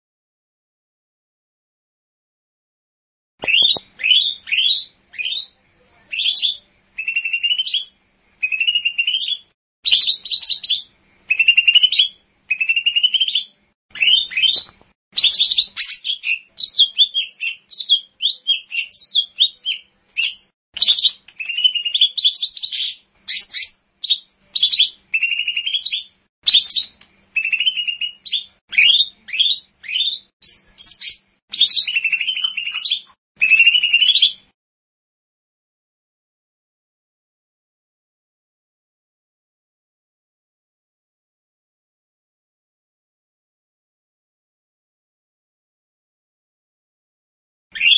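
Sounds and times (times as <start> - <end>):
bird song trills: 3.4 - 34.6, 47.7 - 47.9.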